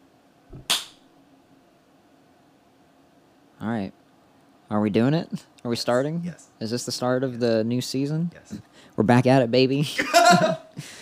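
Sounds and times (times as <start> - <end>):
single hand clap for audio sync: 0.6 - 1.0
speech: 3.7 - 4.0, 4.7 - 10.9.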